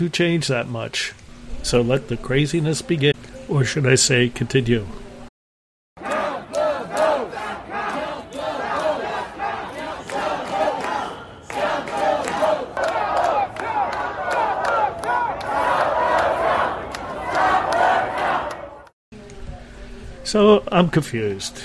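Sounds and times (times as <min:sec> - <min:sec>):
speech: 0:00.0 - 0:05.0, 0:20.3 - 0:21.6
large crowd chanting and yelling: 0:06.0 - 0:18.9.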